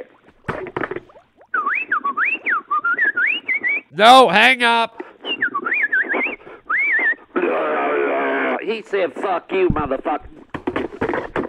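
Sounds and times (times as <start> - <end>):
voice imitating R2-D2 droid noises from Star Wars: 1.4 - 4.0, 5.2 - 8.3
speech: 4.0 - 5.0, 8.7 - 10.4.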